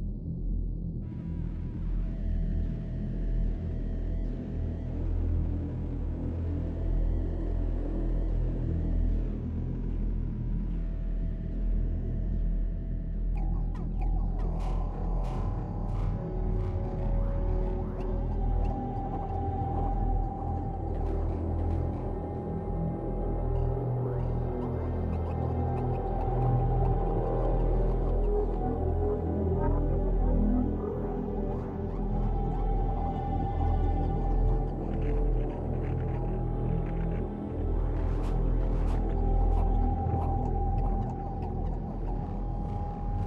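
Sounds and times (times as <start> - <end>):
ambience: 0.1 - 43.2.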